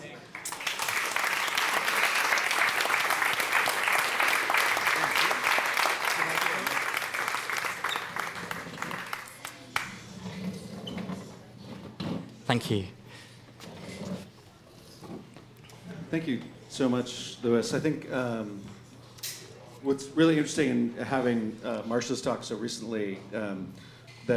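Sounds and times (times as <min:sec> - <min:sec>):
audience applause: 0:00.2 - 0:09.9
speech: 0:12.5 - 0:13.0, 0:16.1 - 0:18.8, 0:19.8 - 0:24.3.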